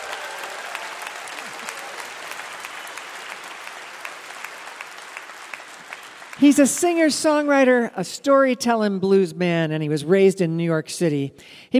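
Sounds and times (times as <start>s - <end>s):
audience applause: 0.0s - 7.4s
speech: 6.4s - 11.7s.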